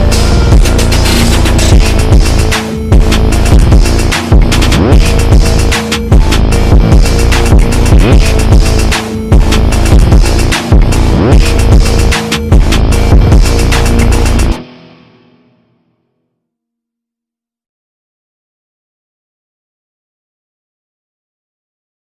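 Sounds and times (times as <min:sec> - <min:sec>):
instrumental music: 0:00.0 - 0:16.4.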